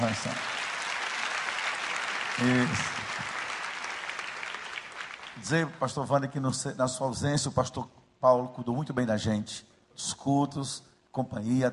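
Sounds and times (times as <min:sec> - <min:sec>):
speech: 0:00.0 - 0:00.5, 0:02.4 - 0:03.0, 0:05.4 - 0:11.7
audience applause: 0:00.0 - 0:05.5.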